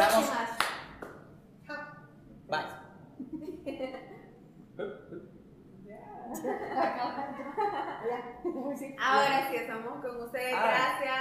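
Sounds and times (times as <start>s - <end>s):
hand claps: 0.6s - 1.2s
laughter: 6.4s - 8.7s
speech: 8.6s - 11.1s.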